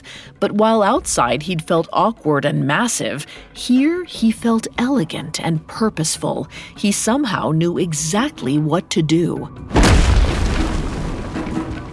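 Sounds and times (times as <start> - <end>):
speech: 0.4 - 9.8
fist smashing rock wall: 9.7 - 11.9.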